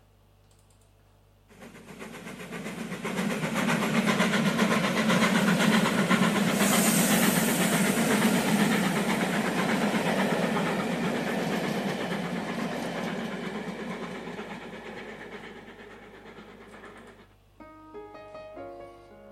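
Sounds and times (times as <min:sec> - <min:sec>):
train sound effect steam hiss: 0:01.5 - 0:17.4
train sound effect rhythmic chugging: 0:01.5 - 0:19.3
piano notes: 0:17.6 - 0:19.3.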